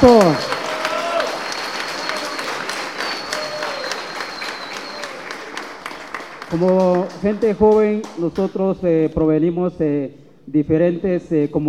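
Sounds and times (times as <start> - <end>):
speech: 0.0 - 0.5, 6.5 - 11.6
audience applauding: 0.0 - 8.6.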